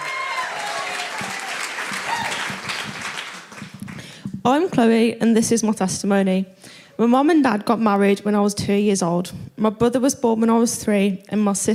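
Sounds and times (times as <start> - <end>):
audience applause: 0.0 - 4.2
speech: 4.4 - 11.7.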